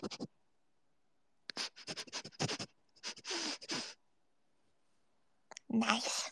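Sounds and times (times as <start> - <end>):
person sniffing: 0.0 - 0.3, 1.5 - 4.0.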